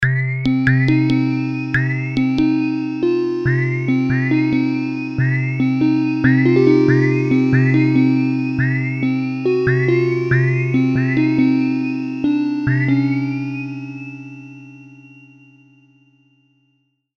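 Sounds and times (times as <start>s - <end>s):
MiniBrute synthesizer keys: 0.4s - 14.8s.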